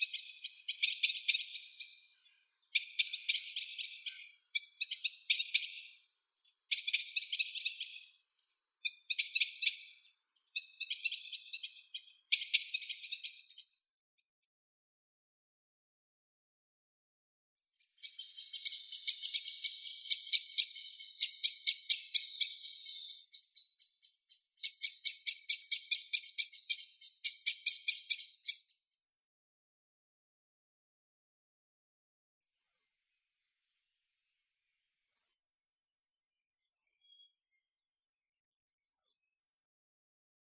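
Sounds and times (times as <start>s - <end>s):
blackbird, Turdus merula: 0.0s - 13.8s, 17.8s - 29.0s, 32.5s - 33.0s, 35.0s - 35.6s, 36.7s - 37.4s.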